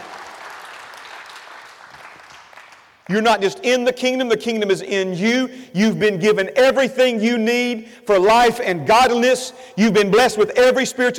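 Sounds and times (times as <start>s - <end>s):
audience hand clapping in praise: 0.0s - 3.1s
speech: 3.1s - 11.1s.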